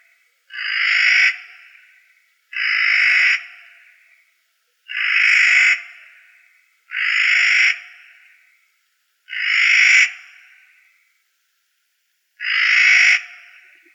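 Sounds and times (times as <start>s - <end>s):
corvids calling: 0.5s - 4.2s, 4.9s - 8.6s, 9.3s - 11.0s, 12.4s - 13.9s.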